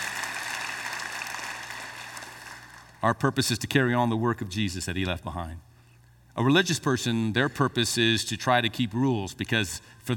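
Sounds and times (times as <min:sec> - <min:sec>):
audience clapping: 0:00.0 - 0:03.0
speech: 0:03.0 - 0:05.7, 0:06.4 - 0:10.1.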